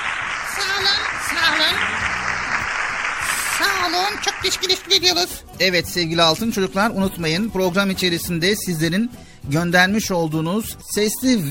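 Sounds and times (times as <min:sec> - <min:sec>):
crowd applause: 0:00.0 - 0:05.0
speech: 0:03.6 - 0:11.4.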